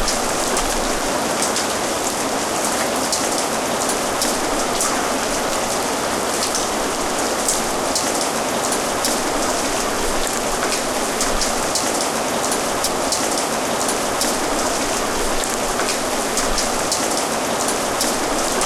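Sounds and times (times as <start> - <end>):
rain: 0.0 - 18.6.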